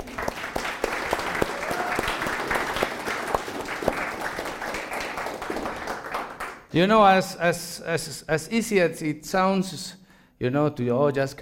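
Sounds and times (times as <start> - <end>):
audience clapping: 0.0 - 6.7
speech: 6.8 - 11.3.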